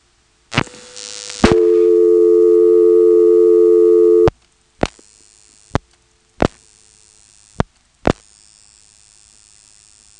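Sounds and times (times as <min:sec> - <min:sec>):
director-type telephone exchange dial tone: 0:01.6 - 0:04.3.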